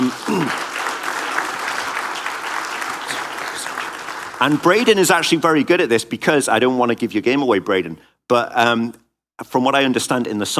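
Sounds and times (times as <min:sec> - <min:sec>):
crowd applause: 0:00.0 - 0:05.4
speech: 0:04.4 - 0:10.5.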